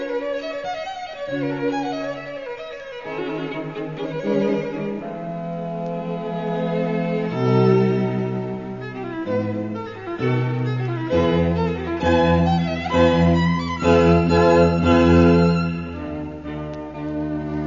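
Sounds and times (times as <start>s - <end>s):
string quartet playing in D major: 0.0s - 17.6s.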